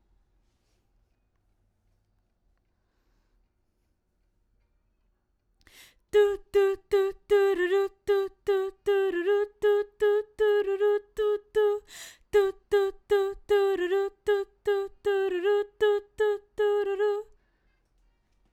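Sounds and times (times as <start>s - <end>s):
background vocals: 5.8s - 17.4s.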